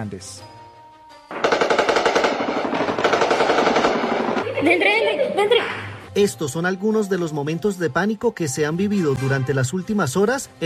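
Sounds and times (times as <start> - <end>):
speech: 0.0 - 0.6, 4.6 - 10.6
gunfire during armed combat: 1.3 - 4.5.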